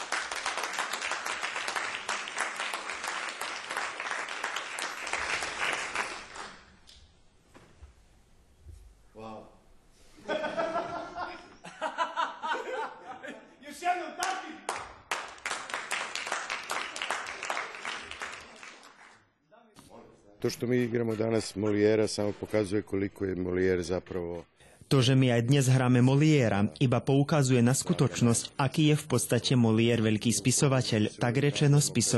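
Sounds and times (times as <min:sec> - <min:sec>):
big audience applause: 0:00.0 - 0:06.8, 0:14.2 - 0:19.2
laughter: 0:10.2 - 0:13.7
speech: 0:20.4 - 0:32.1.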